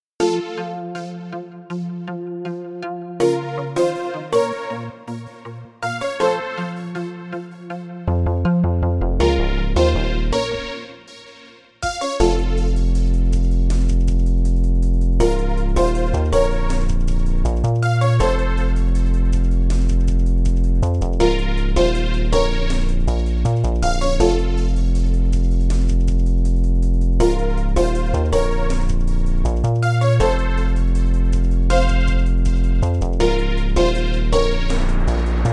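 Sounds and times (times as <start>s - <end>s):
villain instrumental music: 0.2s - 35.5s.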